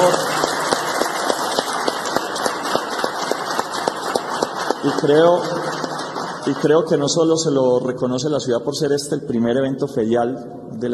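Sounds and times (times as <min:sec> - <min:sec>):
loud audience applause: 0:00.0 - 0:07.4
speech: 0:04.8 - 0:05.7, 0:06.4 - 0:10.9.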